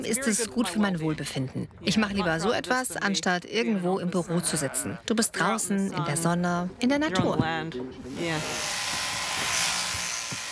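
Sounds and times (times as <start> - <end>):
speech: 0.0 - 8.8
electric clippers shearing a sheep: 8.1 - 10.5.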